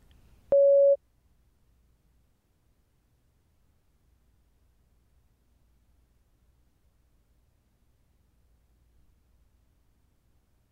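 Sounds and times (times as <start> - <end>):
test prompt electronic beep: 0.6 - 1.0.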